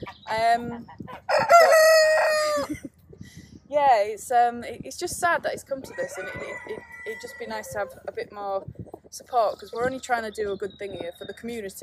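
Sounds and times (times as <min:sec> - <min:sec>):
speech: 0:00.0 - 0:01.0, 0:03.8 - 0:11.8
rooster crowing: 0:01.3 - 0:02.7, 0:05.9 - 0:08.0.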